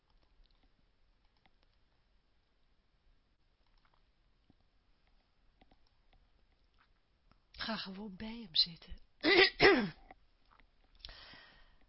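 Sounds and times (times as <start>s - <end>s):
speech: 7.7s - 9.1s
person coughing: 9.2s - 10.0s.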